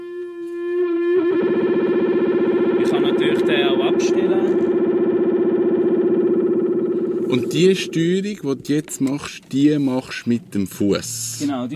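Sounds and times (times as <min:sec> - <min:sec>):
electric guitar amp blending clean and distorted channels: 0:00.2 - 0:08.0
speech: 0:07.3 - 0:11.7.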